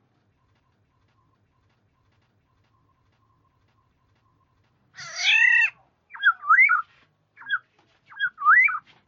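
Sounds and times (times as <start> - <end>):
black-naped oriole fluty whistled phrases: 6.1 - 6.8, 7.4 - 8.8.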